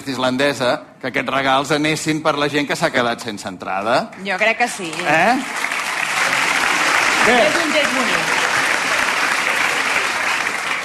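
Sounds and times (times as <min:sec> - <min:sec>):
speech: 0:00.0 - 0:05.7, 0:07.2 - 0:08.4
audience applause: 0:04.8 - 0:10.8.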